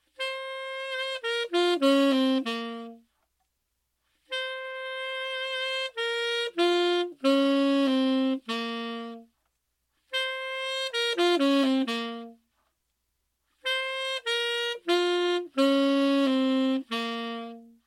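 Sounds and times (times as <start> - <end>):
saxophone: 0.0 - 3.3, 4.0 - 12.8, 13.5 - 17.8.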